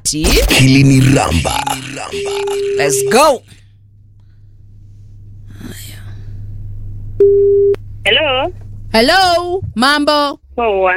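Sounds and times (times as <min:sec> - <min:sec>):
speech: 0:00.1 - 0:03.6, 0:07.2 - 0:07.5, 0:08.1 - 0:10.9
telephone line beep during a live phone call from a radio studio: 0:02.2 - 0:03.4, 0:07.2 - 0:07.8.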